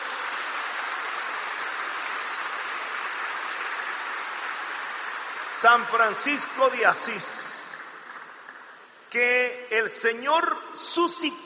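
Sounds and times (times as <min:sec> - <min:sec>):
crowd applauding: 0:00.0 - 0:08.8
speech: 0:05.6 - 0:07.5, 0:09.1 - 0:11.4.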